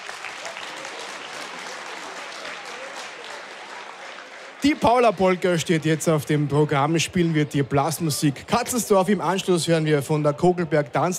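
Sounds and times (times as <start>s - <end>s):
applause: 0.0s - 6.5s
speech: 4.6s - 11.1s.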